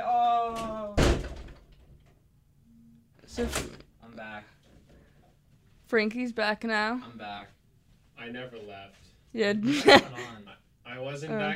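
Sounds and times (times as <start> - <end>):
door slamming: 0.5 - 2.1
speech: 3.4 - 3.8, 5.9 - 7.6, 8.2 - 11.5
laughter: 9.6 - 10.4.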